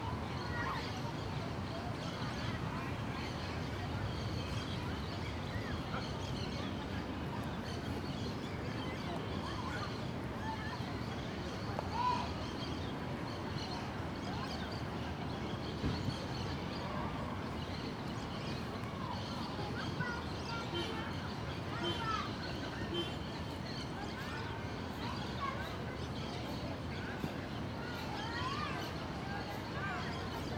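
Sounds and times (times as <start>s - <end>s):
people in a park in the afternoon: 0.0s - 30.5s.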